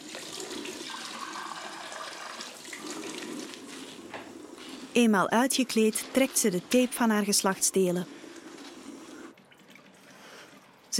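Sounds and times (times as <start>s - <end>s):
water running from a tap: 0.0s - 4.1s
speech: 5.0s - 8.2s.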